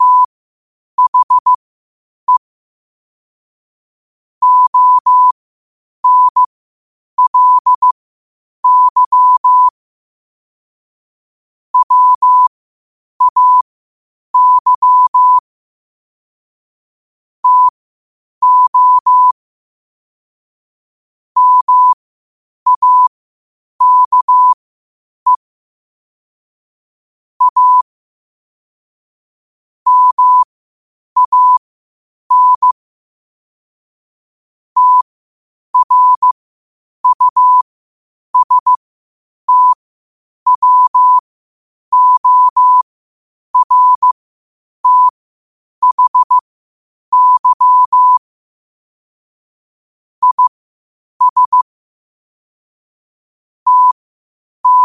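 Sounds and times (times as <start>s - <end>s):
morse code at 5 wpm: 0.0s - 0.3s, 1.0s - 1.6s, 4.4s - 5.4s, 6.0s - 6.5s, 7.2s - 8.0s, 8.6s - 9.7s, 11.8s - 12.5s, 13.2s - 13.6s, 14.4s - 15.4s, 17.4s - 17.7s, 18.4s - 19.4s, 21.4s - 22.0s, 22.7s - 23.1s, 23.8s - 24.6s, 27.4s - 27.8s, 29.9s - 30.5s, 31.2s - 31.6s, 32.3s - 32.8s, 34.8s - 35.1s, 35.8s - 36.4s, 37.0s - 37.6s, 38.4s - 38.8s, 39.5s - 39.8s, 40.5s - 41.2s, 41.9s - 42.8s, 43.6s - 44.2s, 44.8s - 45.2s, 45.8s - 46.5s, 47.1s - 48.2s, 50.2s - 50.5s, 51.2s - 51.6s, 53.7s - 54.0s, 54.6s - 54.8s.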